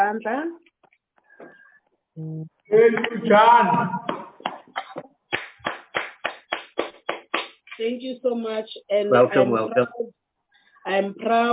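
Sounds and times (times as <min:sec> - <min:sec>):
speech: 0:00.1 - 0:00.7, 0:02.2 - 0:04.1, 0:07.8 - 0:10.2, 0:10.8 - 0:11.5
round of applause: 0:04.0 - 0:07.8.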